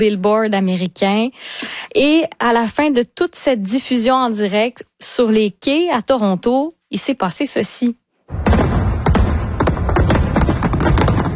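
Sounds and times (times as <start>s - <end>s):
speech: 0.0s - 8.5s
fireworks over the Toronto waterfront at midnight: 8.3s - 11.3s.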